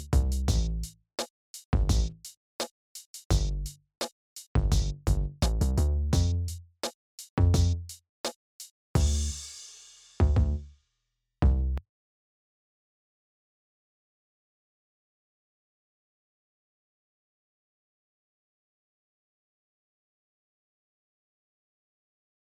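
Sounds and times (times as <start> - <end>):
unequalized rhythm bass: 0.0 - 0.9, 1.8 - 2.3, 3.3 - 3.8, 4.6 - 6.6, 7.4 - 8.0, 9.0 - 9.4, 10.2 - 10.6.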